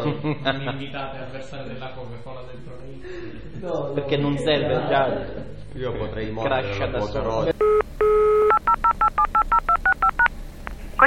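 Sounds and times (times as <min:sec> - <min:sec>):
speech: 0:00.1 - 0:09.0
long steady telephone beep: 0:07.6 - 0:10.3
telephone keypad DTMF tones: 0:07.6 - 0:10.3.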